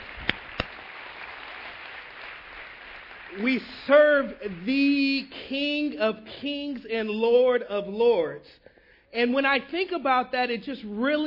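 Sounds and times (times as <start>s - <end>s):
audience applause: 0.0s - 5.1s
speech: 3.3s - 11.2s.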